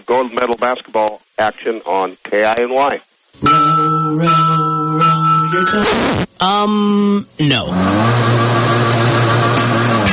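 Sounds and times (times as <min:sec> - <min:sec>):
speech: 0:00.0 - 0:08.4
outboard boat motor revving at high throttle: 0:07.7 - 0:10.1.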